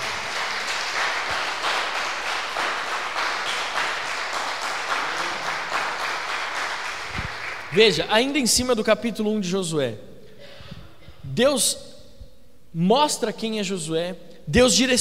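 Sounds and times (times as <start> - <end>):
audience applauding: 0.0 - 8.0
speech: 7.8 - 10.1, 11.4 - 11.9, 12.7 - 14.9.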